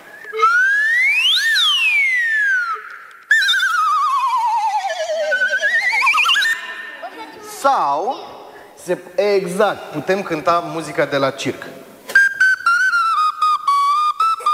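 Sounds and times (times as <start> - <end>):
slide whistle glissando: 0.0 - 7.0, 12.1 - 14.5
speech: 7.6 - 11.8.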